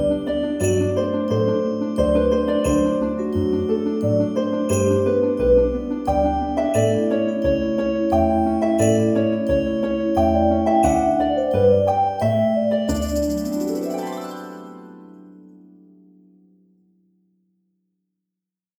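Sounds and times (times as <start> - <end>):
minuet dance music: 0.0 - 14.7.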